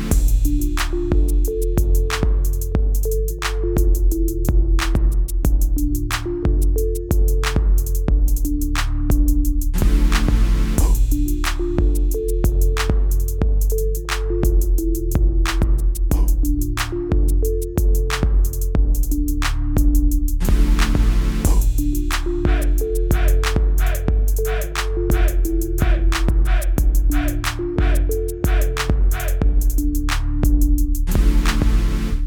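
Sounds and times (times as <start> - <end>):
ominous trap beat: 0.1 - 32.1.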